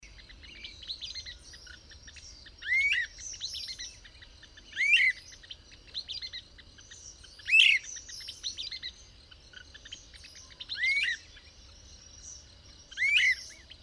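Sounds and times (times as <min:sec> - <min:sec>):
bird song: 0:00.0 - 0:13.8.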